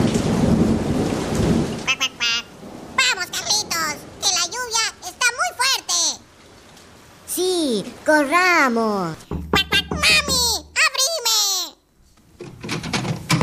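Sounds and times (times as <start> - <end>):
deep thunder rumble: 0.0 - 1.9, 2.5 - 5.0
heavy rain pouring: 0.0 - 11.5
speech: 8.1 - 9.4.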